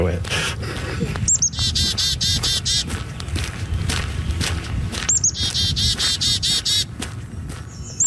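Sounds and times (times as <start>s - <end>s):
birds singing in rapid repeated high chirps: 0.0s - 8.0s
rustling outdoor murmur: 0.0s - 8.0s.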